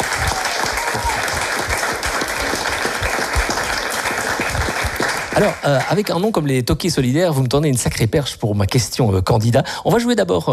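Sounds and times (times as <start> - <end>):
crowd applauding: 0.0 - 6.5
speech: 5.4 - 10.5.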